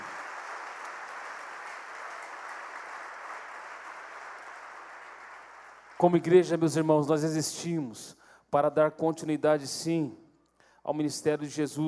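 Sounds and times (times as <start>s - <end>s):
audience applauding: 0.0s - 6.2s
speech: 6.0s - 10.2s, 10.8s - 11.8s.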